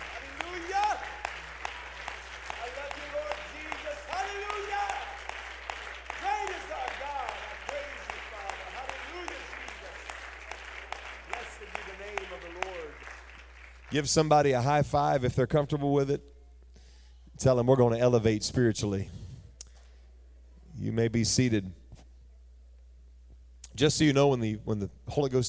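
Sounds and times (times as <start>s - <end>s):
audience clapping hands: 0.0s - 14.8s
speech: 13.9s - 16.3s, 17.4s - 19.2s, 21.0s - 21.8s, 23.8s - 25.4s.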